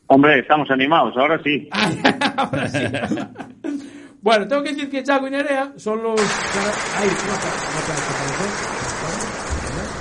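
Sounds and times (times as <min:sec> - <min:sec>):
speech: 0:00.1 - 0:03.5, 0:04.2 - 0:09.3
laughter: 0:01.7 - 0:04.0, 0:06.2 - 0:10.0
audience applause at a rally awards ceremony at the Rally de Mariña: 0:06.2 - 0:10.0.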